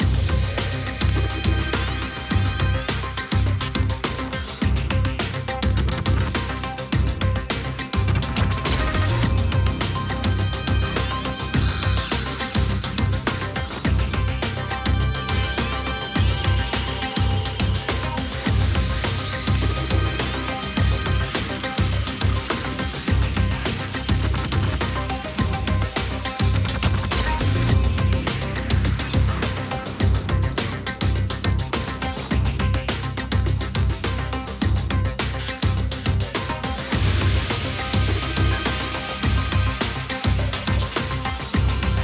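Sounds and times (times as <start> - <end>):
loading loop: 0.0 - 42.0.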